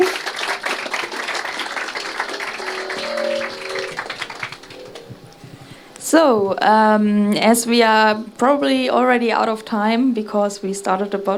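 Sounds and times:
audience applause: 0.0 - 5.2
brief faint tonal sound: 1.4 - 6.2
speech: 6.1 - 11.3.

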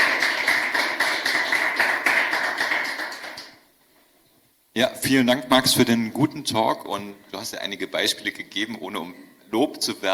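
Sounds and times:
applause at the end of a talk: 0.0 - 3.6
speech: 4.8 - 10.1.

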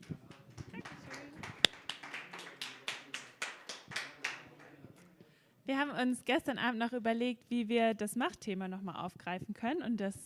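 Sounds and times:
audience applause: 0.0 - 4.8
speech: 5.7 - 10.2.

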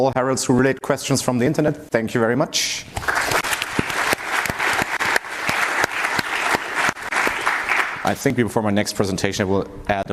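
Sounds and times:
speech: 0.0 - 3.2, 8.0 - 10.1
audience applause: 3.0 - 8.2.

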